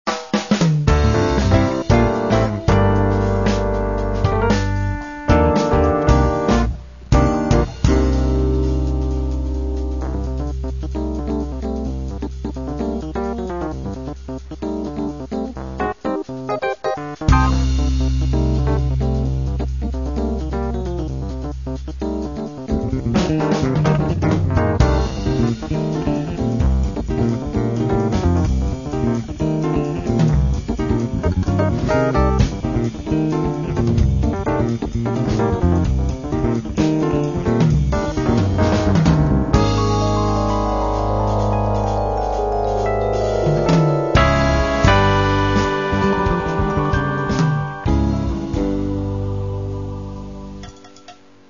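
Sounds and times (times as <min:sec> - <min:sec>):
fusion orchestra music: 0:00.9 - 0:50.6.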